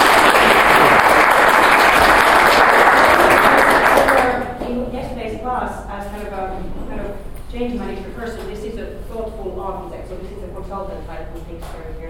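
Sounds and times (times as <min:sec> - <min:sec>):
crowd applauding: 0:00.0 - 0:04.6.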